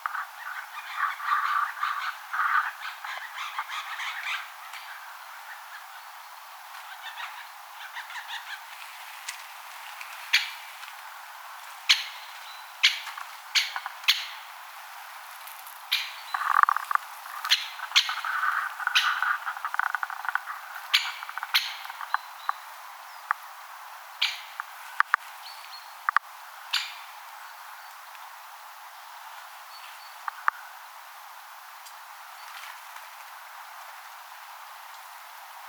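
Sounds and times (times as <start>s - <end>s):
four great spotted woodpeckers spring calling near a bird feeder: 0.0s - 5.9s, 10.3s - 10.7s, 11.8s - 14.6s, 15.8s - 23.4s, 24.2s - 27.9s.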